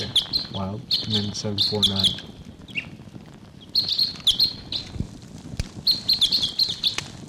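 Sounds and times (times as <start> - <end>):
distant Type 6 bird call: 0.0 - 2.9, 3.7 - 4.9, 5.8 - 7.0
speech: 0.6 - 2.3.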